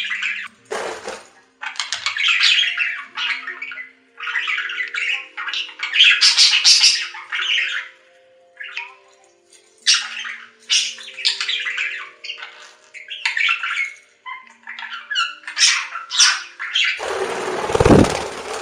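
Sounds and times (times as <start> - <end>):
budgerigar chatter and squawks: 1.6 - 8.0, 9.9 - 18.2.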